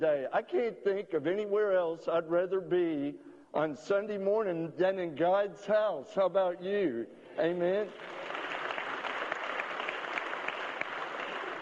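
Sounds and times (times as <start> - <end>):
speech: 0.0 - 8.4
audience applause: 7.9 - 11.6.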